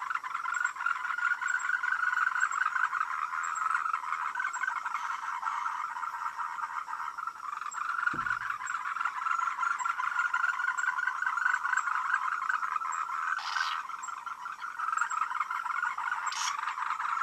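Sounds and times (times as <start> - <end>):
frogs calling in a dense chorus of overlapping croaks: 0.0 - 17.2.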